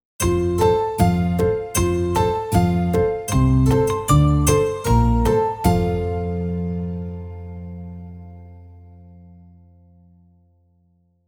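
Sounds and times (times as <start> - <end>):
happy ident jingle: 0.2 - 8.0.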